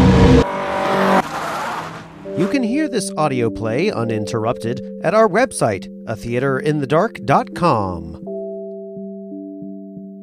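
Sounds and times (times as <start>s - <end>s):
car swerving hard with tires squealing: 0.0s - 2.6s
car engine roar: 0.0s - 2.9s
speech: 2.4s - 8.2s.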